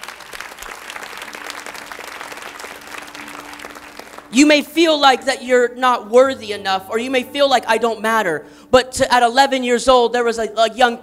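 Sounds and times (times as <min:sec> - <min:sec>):
audience applauding with hand claps: 0:00.0 - 0:04.6
speech: 0:04.3 - 0:11.0.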